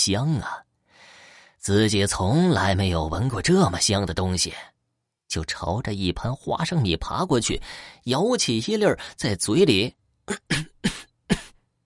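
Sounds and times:
speech: 0:00.0 - 0:00.6, 0:01.6 - 0:04.7, 0:05.3 - 0:11.1
coughing: 0:10.3 - 0:11.6.

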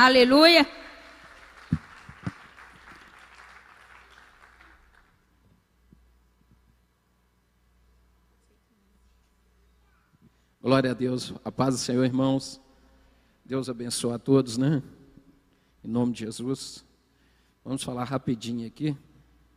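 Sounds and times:
speech: 0:00.0 - 0:00.8, 0:10.6 - 0:12.6, 0:13.5 - 0:15.0, 0:15.8 - 0:16.9, 0:17.6 - 0:19.1
audience applauding: 0:01.0 - 0:05.3.

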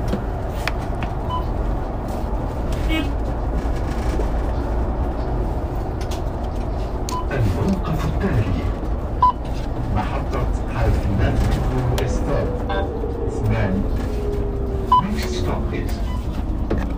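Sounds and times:
bus engine and road noise: 0:00.0 - 0:16.9
faint rising whine: 0:10.4 - 0:16.6.

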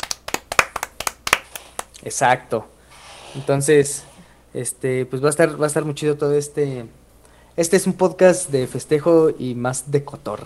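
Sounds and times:
hand clapping: 0:00.0 - 0:02.0
speech: 0:02.0 - 0:02.7, 0:03.3 - 0:07.0, 0:07.6 - 0:10.4.

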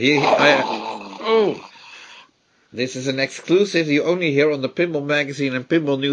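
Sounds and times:
speech: 0:00.0 - 0:01.7, 0:02.7 - 0:06.1
voice imitating heavy rasping mechanical breathing: 0:00.1 - 0:01.9.

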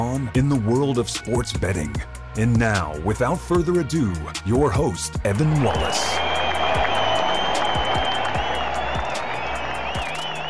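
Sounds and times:
speech: 0:00.0 - 0:06.3
crowd applause: 0:05.5 - 0:10.4
shouts and whistles: 0:05.5 - 0:10.4.

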